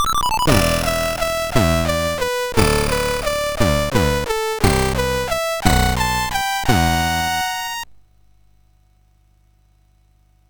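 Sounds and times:
MOS6581R4 SID chip music: 0.0s - 8.0s.

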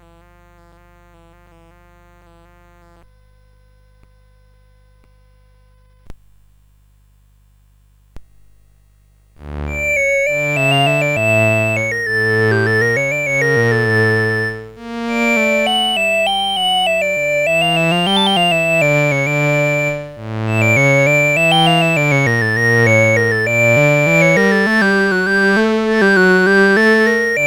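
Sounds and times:
CSG 8580 sound chip: 9.5s - 27.4s.

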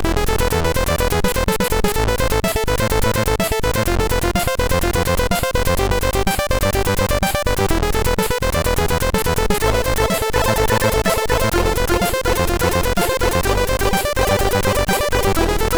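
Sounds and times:
SID MOS6581R3 chip sound: 0.1s - 15.7s.

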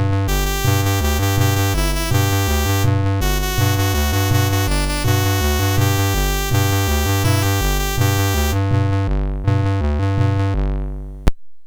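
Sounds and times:
chiptune music on a MOS6581R3 sound chip: 0.0s - 11.0s.

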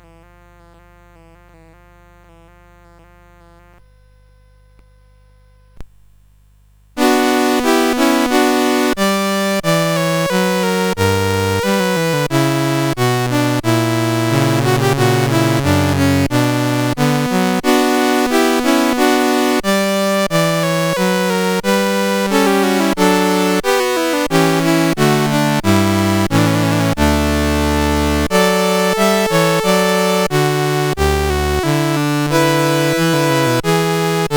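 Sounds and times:
gavotte played on a CSG 8580R5 sound chip: 7.0s - 34.3s.

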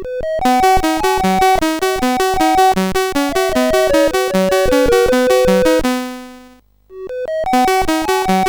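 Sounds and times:
SID chip CSG8580R5 music: 0.0s - 8.4s.

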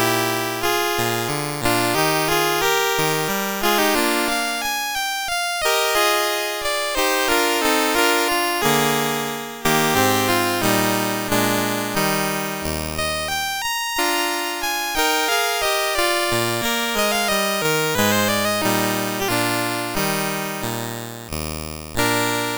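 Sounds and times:
andantino piece played on a MOS6581R3 sound chip: 0.0s - 22.5s.

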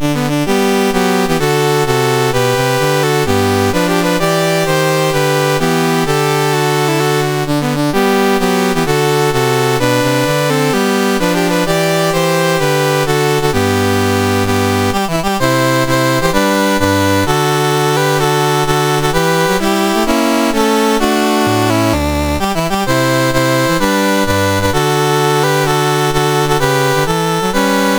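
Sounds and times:
national anthem on MOS 6581R4 sound chip: 0.0s - 27.9s.

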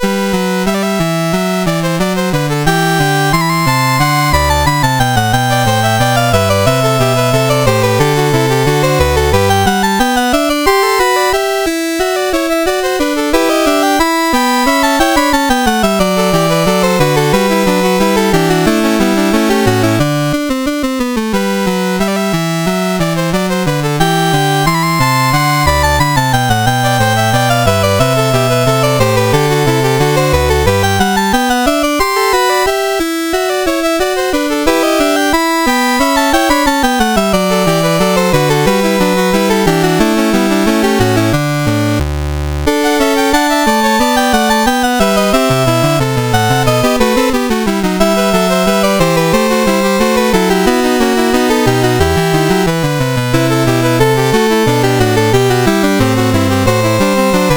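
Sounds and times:
MOS6581R4 chip music variation: 0.0s - 57.5s.

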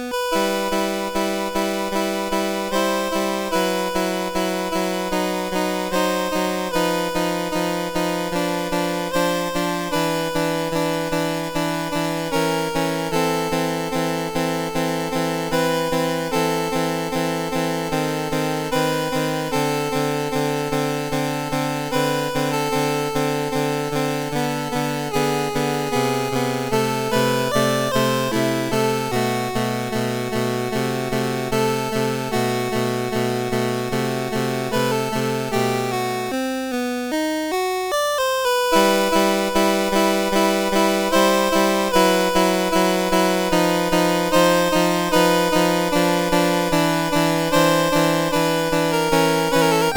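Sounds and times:
piano prelude on a MOS 8580 SID chip: 0.0s - 49.9s.

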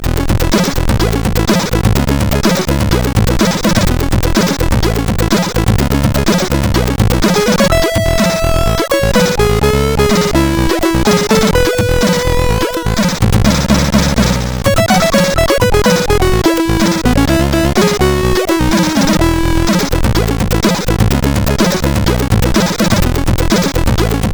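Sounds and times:
SID CSG8580R5 chip music: 0.0s - 24.3s.

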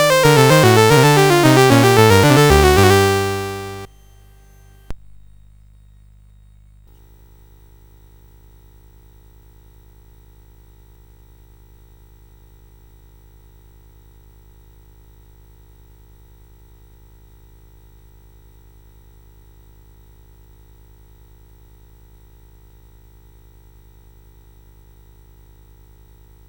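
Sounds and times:
keyboard piece on a CSG8580 synthesizer chip: 0.0s - 3.9s.

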